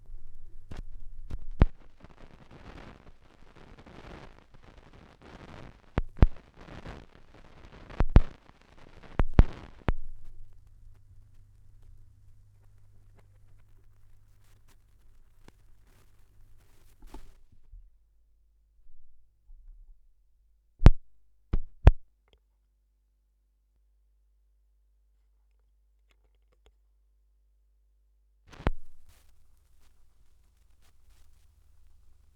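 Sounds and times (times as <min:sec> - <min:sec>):
vinyl record noise: 0:00.0 - 0:17.7, 0:28.5 - 0:32.3.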